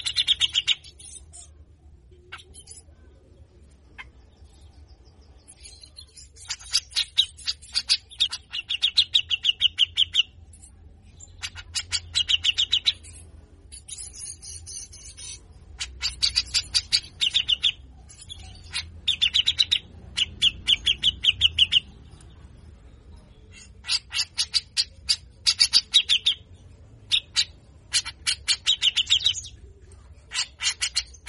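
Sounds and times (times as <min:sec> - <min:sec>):
grey-cheeked bulbul giving harsh chatter: 0:00.0 - 0:31.2.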